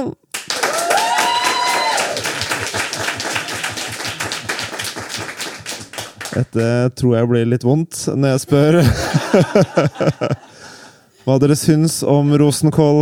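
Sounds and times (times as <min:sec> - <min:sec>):
speech: 0:00.0 - 0:00.2, 0:06.4 - 0:10.5, 0:11.2 - 0:13.0
audience clapping: 0:00.3 - 0:06.8
laughter: 0:02.3 - 0:05.7, 0:08.5 - 0:11.0.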